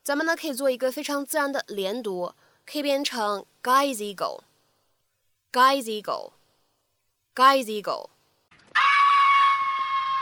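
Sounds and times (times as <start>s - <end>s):
speech: 0.0s - 4.5s, 5.5s - 6.4s, 7.4s - 8.1s
cat screaming: 8.6s - 10.1s.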